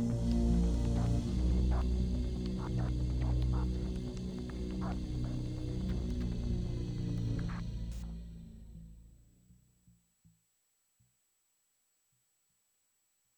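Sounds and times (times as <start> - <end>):
instrumental music: 0.0 - 8.0.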